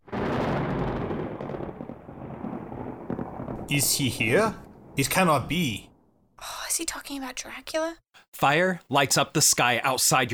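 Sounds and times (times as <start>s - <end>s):
rumbling thunder: 0.0s - 6.4s
speech: 3.7s - 10.3s.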